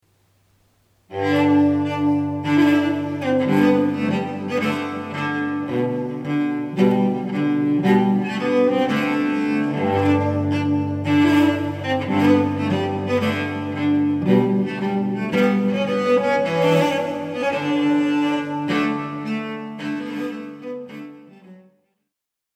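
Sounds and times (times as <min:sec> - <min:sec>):
solo cello: 0:00.2 - 0:22.1.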